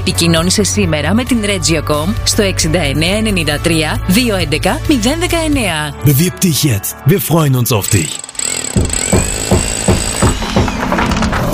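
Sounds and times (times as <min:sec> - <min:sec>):
speech: 0:00.1 - 0:09.6
demolition and construction work hammering: 0:08.2 - 0:11.5.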